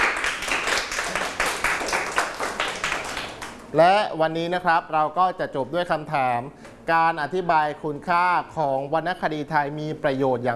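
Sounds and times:
group of students clapping in a classroom: 0.0 - 3.7
speech: 3.7 - 10.5.

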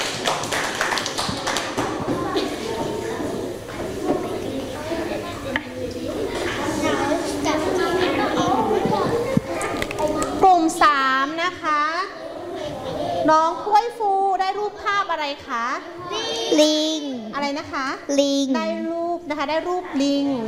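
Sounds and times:
classroom of children clapping: 0.0 - 2.9
children chattering: 0.0 - 20.4
speech: 17.5 - 20.4.

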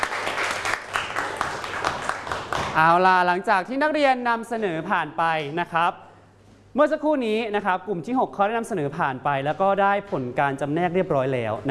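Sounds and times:
classmates clapping for group 6 after its presentation: 0.0 - 2.8
speech: 2.8 - 6.1, 6.8 - 11.6.

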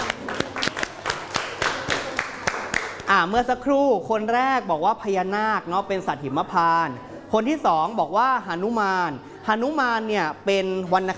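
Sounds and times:
small audience applauding: 0.0 - 3.1
speech: 3.1 - 11.1.

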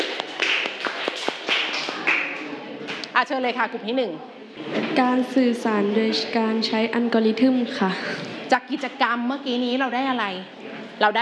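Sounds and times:
classroom students clapping: 0.0 - 3.1
speech: 3.2 - 11.2.

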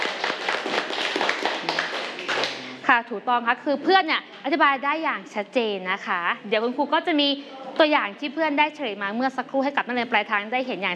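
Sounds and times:
students in a math classroom clapping for a classmate: 0.0 - 2.8
speech: 2.9 - 10.9.

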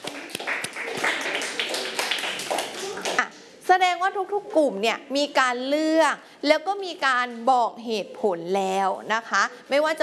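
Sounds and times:
group of children clapping: 0.0 - 3.3
speech: 3.8 - 10.0.

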